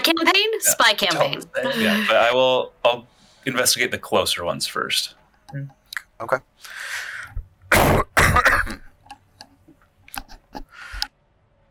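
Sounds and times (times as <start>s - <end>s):
speech: 0.1s - 7.1s
sneeze: 7.7s - 8.4s.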